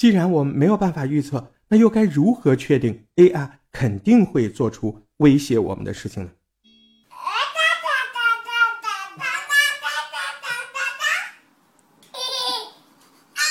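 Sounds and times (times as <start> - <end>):
speech: 0.0 - 6.4
twin babies babbling to each other: 7.1 - 11.4, 12.1 - 12.8.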